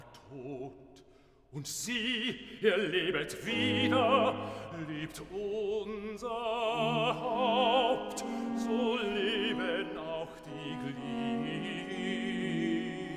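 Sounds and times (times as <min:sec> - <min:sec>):
bass singing cantata recitative: 0:02.8 - 0:13.1.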